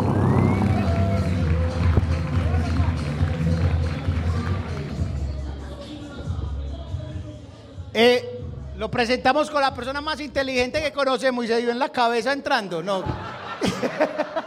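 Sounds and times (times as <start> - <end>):
applause: 0.0 - 5.2
speech: 8.0 - 14.3
laughter: 12.8 - 14.4.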